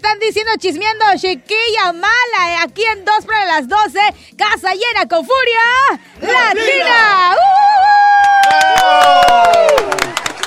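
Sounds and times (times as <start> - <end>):
speech: 0.1 - 8.0
studio audience applause: 8.1 - 10.4.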